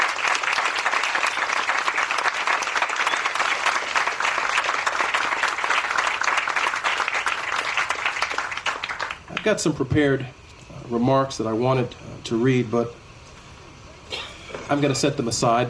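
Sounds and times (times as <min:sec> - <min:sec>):
audience applause: 0:00.0 - 0:09.5
speech: 0:09.4 - 0:13.0, 0:14.7 - 0:15.6.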